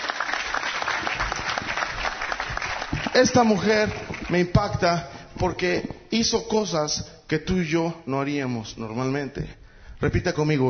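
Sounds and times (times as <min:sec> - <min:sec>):
audience applause: 0:00.0 - 0:04.5
speech: 0:03.2 - 0:10.6.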